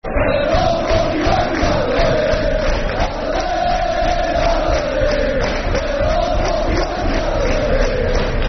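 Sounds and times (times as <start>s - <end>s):
football crowd chanting at The Lane: 0.0s - 8.4s.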